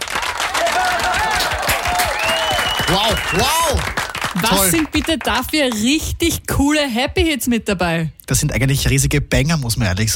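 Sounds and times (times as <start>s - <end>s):
short round of applause in a radio studio during a music marathon: 0.0s - 6.0s
speech: 2.9s - 10.1s.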